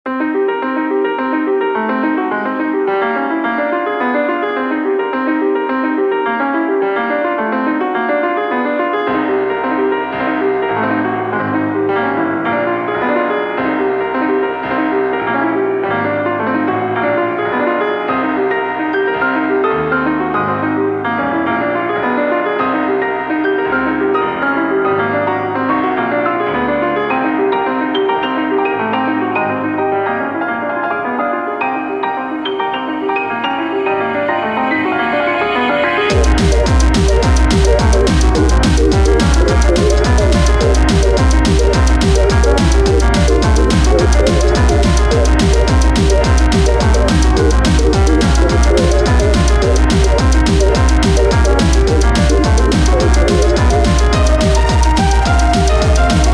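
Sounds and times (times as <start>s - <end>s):
piano: 0.0s - 56.3s.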